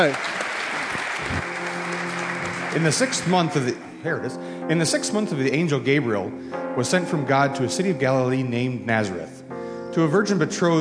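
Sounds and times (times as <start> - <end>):
speech: 0.0 - 0.3, 2.8 - 10.7
audience applause: 0.0 - 3.9.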